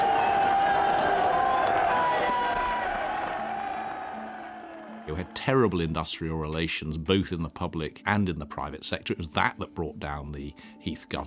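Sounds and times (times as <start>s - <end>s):
crowd of about 7,000 people shouting in triumph: 0.0s - 5.4s
speech: 5.2s - 11.2s.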